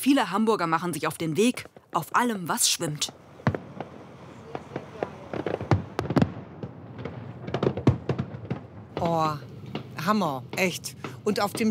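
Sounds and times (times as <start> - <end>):
speech: 0.0 - 3.3, 9.1 - 11.6
fireworks exploding: 2.9 - 11.6.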